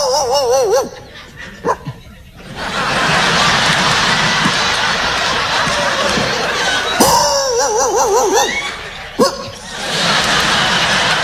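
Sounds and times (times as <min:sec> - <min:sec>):
man imitating dogs barking: 0:00.0 - 0:02.0, 0:07.0 - 0:08.6, 0:09.2 - 0:09.5
audience laughing: 0:00.1 - 0:11.2.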